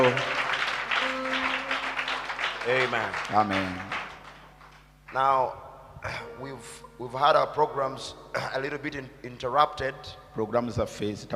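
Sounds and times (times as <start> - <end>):
audience clapping in praise: 0.0 - 5.2
speech: 2.7 - 4.0, 5.1 - 11.3.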